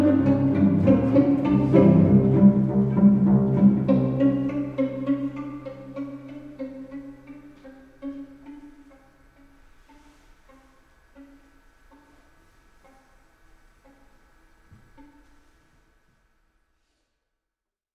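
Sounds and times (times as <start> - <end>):
waltz music: 0.0 - 9.1.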